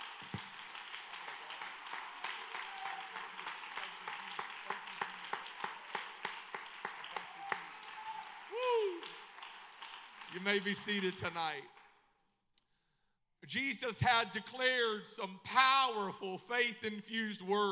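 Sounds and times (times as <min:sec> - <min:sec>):
audience clapping hands: 0:00.0 - 0:12.0
speech: 0:10.4 - 0:11.8, 0:13.5 - 0:17.6.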